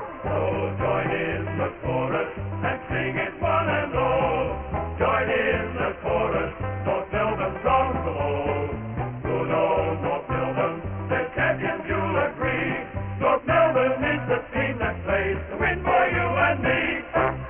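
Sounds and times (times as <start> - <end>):
chorus singing: 0.0 - 17.4.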